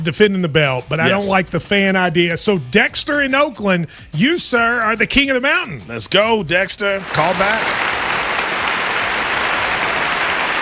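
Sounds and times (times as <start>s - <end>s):
speech: 0.0s - 8.1s
applause sound effect: 7.0s - 10.6s.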